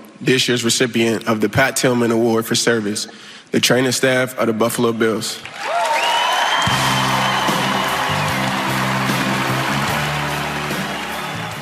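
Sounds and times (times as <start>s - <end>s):
speech: 0.2s - 5.8s
crowd applause, standing ovation: 5.5s - 11.6s.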